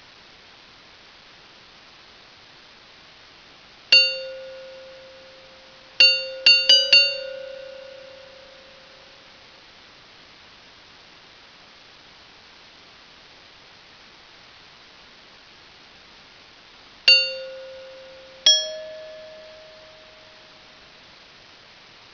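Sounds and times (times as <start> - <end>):
bells ringing: 4.0 - 9.2, 17.1 - 20.9.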